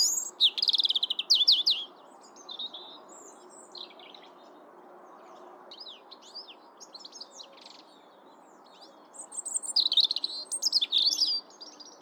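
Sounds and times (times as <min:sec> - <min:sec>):
European robin Erithacus rubecula singing: 0:00.0 - 0:03.9, 0:09.2 - 0:12.0.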